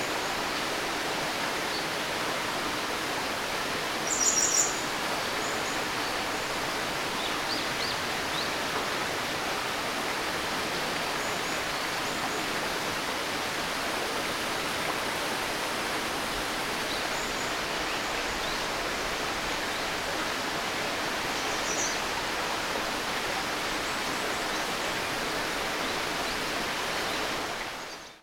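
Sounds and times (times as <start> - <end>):
river flowing: 0.0 - 28.1.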